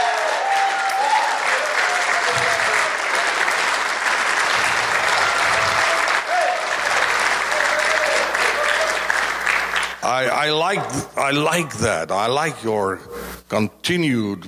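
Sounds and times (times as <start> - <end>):
audience applauding: 0.0 - 10.4
speech: 10.2 - 14.4.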